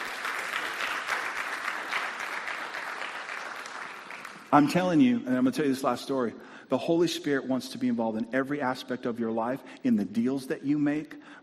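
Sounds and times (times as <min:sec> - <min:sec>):
audience applause: 0:00.0 - 0:04.7
speech: 0:04.5 - 0:11.4.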